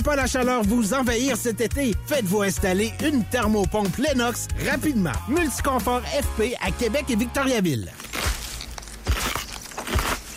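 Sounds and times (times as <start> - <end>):
speech: 0.1 - 8.3
crisp celery crunching imitating forest footsteps: 7.9 - 10.3.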